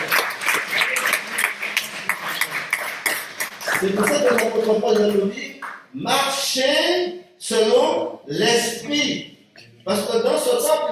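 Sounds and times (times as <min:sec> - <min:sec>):
church congregation clapping during a sermon: 0:00.0 - 0:05.9
speech: 0:03.8 - 0:09.2, 0:09.8 - 0:10.9.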